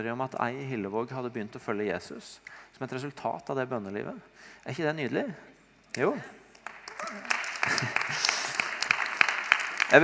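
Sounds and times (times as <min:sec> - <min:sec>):
speech: 0:00.0 - 0:06.4
audience clapping: 0:06.5 - 0:10.0.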